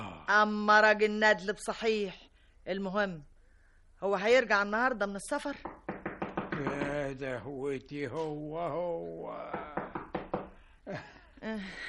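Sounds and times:
speech: 0.3s - 3.3s, 4.0s - 5.7s, 6.6s - 9.8s, 10.9s - 11.8s
knocking on a door as a radio drama sound effect: 5.6s - 7.2s, 9.5s - 10.6s.

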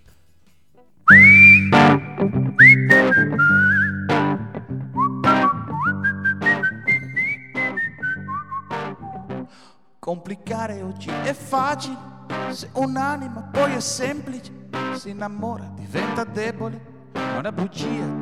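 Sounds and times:
speech: 0.9s - 1.8s, 10.3s - 18.1s
whistling melody in a song: 1.1s - 9.5s.

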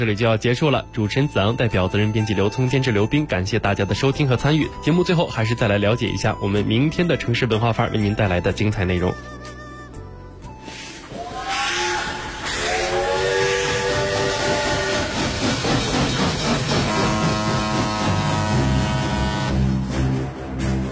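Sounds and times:
speech: 0.0s - 9.4s
steam locomotive whistle: 10.6s - 15.6s, 16.3s - 19.8s
steam locomotive hissing: 10.6s - 19.4s.

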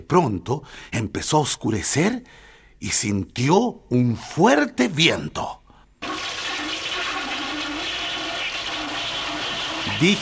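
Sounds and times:
speech: 0.0s - 5.6s, 10.0s - 10.2s
toilet flushing: 6.0s - 10.2s.

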